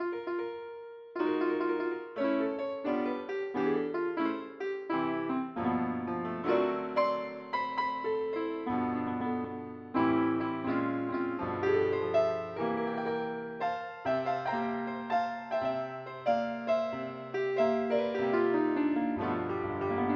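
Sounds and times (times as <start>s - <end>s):
piano: 0.0s - 20.1s.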